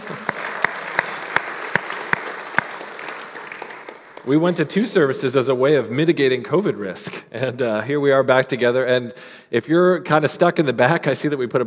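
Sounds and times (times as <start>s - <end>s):
audience applauding: 0.0s - 4.7s
speech: 4.2s - 11.6s.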